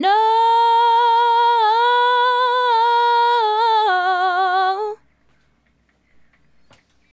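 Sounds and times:
female solo hip-hop and RnB vocals: 0.0 - 5.0.

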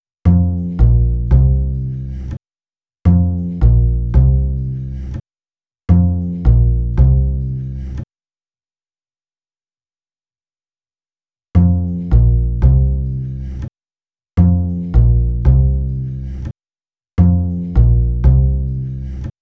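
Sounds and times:
hip-hop bass: 0.3 - 2.4, 3.1 - 5.2, 5.9 - 8.0, 11.6 - 13.7, 14.4 - 16.5, 17.2 - 19.3.

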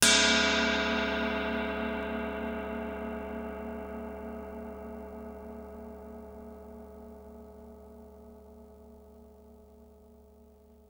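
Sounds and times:
cymbal: 0.0 - 7.4.

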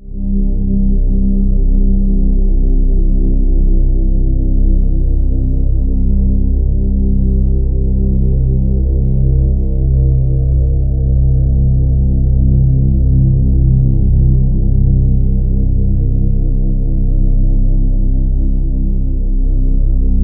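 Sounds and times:
ominous bass drones: 0.0 - 20.2.

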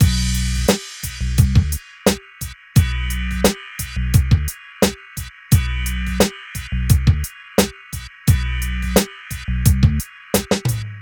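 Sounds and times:
hip hop and R&B drum loops mix: 0.0 - 11.0.

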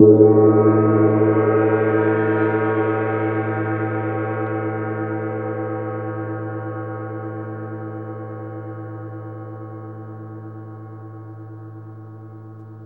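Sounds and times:
gong: 0.0 - 6.5.

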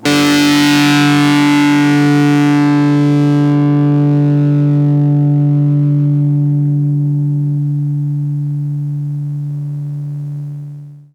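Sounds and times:
blues guitar in open D tuning: 0.0 - 10.9.

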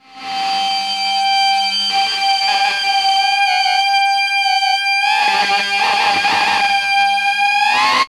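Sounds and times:
industrial feedback noise: 0.0 - 8.1.

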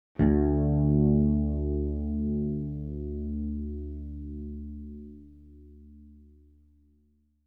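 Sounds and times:
bright bass note D2: 0.2 - 6.2.

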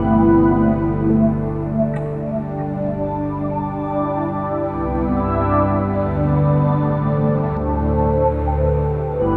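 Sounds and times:
billowing synth pads: 0.0 - 9.3.

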